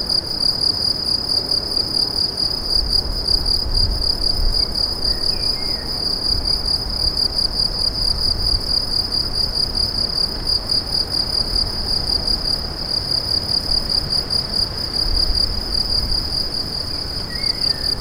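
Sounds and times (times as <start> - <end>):
cricket chorus chirping: 0.0 - 17.9.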